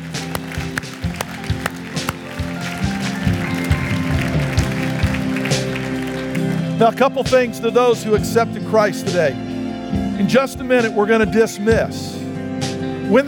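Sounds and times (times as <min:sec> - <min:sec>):
audience clapping: 0:00.0 - 0:07.5
sustained low musical tones: 0:00.0 - 0:13.2
speech: 0:06.8 - 0:09.4, 0:10.2 - 0:12.2, 0:13.1 - 0:13.2.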